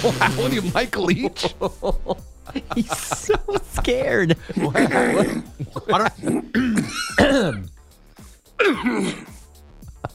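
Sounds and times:
laughter: 0:00.0 - 0:07.2, 0:09.8 - 0:10.1
speech: 0:00.0 - 0:07.7, 0:08.6 - 0:09.3
man coughing and clearing throat after swallowing something: 0:02.5 - 0:07.7, 0:08.6 - 0:10.1.

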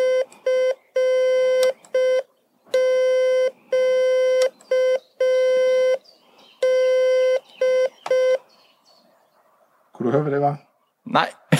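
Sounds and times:
Morse code beeps from electronic key: 0:00.0 - 0:06.0, 0:06.6 - 0:08.4
speech: 0:10.1 - 0:11.4.

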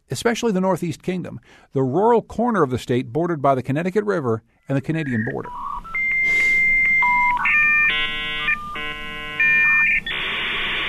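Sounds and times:
speech: 0:00.1 - 0:05.8
dial-up modem connection tones: 0:05.0 - 0:10.8.

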